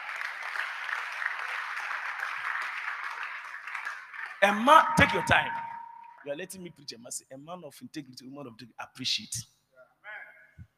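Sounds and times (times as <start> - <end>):
crowd clapping and applauding: 0.0 - 6.3
speech: 4.4 - 5.6, 6.2 - 9.6.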